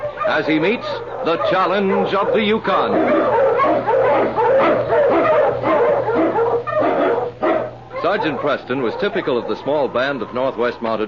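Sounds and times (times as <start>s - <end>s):
Husky sled dogs barking and yipping: 0.0s - 11.0s
speech: 0.3s - 5.0s, 8.0s - 11.0s.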